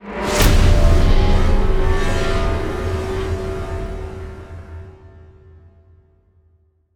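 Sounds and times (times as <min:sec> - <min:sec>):
modulated stinger: 0:00.2 - 0:05.0.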